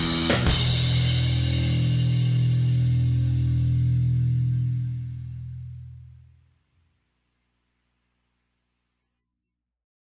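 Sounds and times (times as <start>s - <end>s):
guitar backing track: 0.0s - 6.3s.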